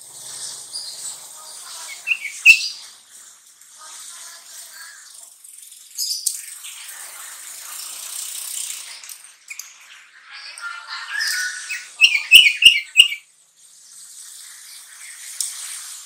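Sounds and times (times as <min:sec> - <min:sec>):
sooty-headed bulbul chirping: 0:01.9 - 0:02.7, 0:11.7 - 0:13.2.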